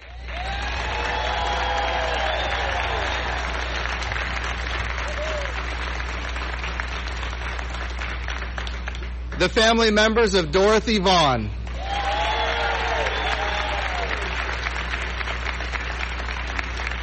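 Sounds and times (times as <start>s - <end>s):
audience applause: 0.0s - 9.4s, 11.6s - 17.0s
low hum: 0.0s - 17.0s
whoops and cheers: 0.1s - 3.8s, 5.0s - 5.8s, 11.7s - 14.5s
speech: 9.4s - 11.6s.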